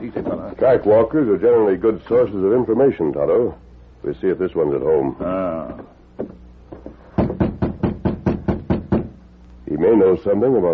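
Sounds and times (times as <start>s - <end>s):
speech: 0.0s - 6.4s, 9.8s - 10.7s
knocking on a cabin door: 7.2s - 9.2s.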